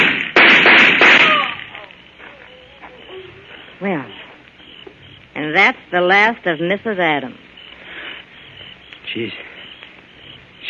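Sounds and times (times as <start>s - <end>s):
gunshot sound effect in a radio drama: 0.0s - 1.8s
speech: 3.8s - 4.1s, 5.5s - 7.4s, 9.2s - 9.5s.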